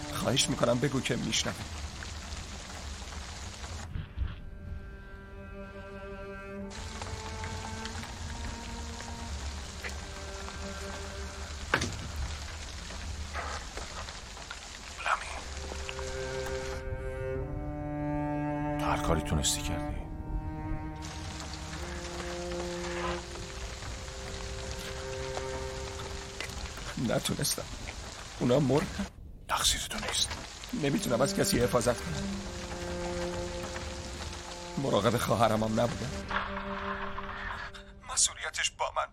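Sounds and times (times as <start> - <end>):
steady rain: 0.0 - 37.9
speech: 0.2 - 1.9, 27.2 - 27.8, 28.4 - 32.6, 34.8 - 36.8
sustained musical tones: 4.4 - 11.7, 15.4 - 27.2, 30.7 - 38.0.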